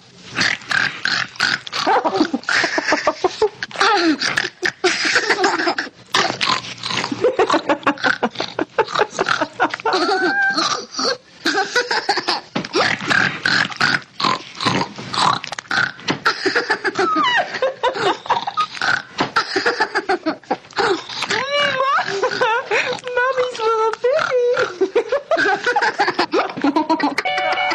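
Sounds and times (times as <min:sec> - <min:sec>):
person imitating a pig eating: 0:00.4 - 0:02.8, 0:03.4 - 0:11.3, 0:12.7 - 0:16.0, 0:20.7 - 0:25.7
snickering laughter: 0:01.8 - 0:06.3, 0:07.1 - 0:12.5, 0:16.3 - 0:18.7, 0:19.4 - 0:21.0, 0:21.7 - 0:23.0, 0:24.5 - 0:27.6.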